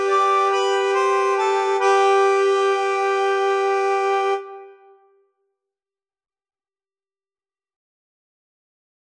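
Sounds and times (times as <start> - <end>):
slow musette music: 0.0 - 5.2.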